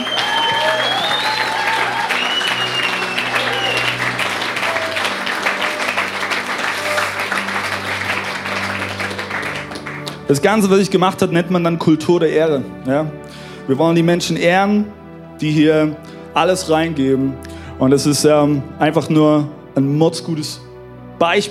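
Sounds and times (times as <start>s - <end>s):
people cheering: 0.0s - 10.2s
crowd applauding: 0.0s - 10.4s
speech: 10.3s - 20.6s, 21.2s - 21.4s.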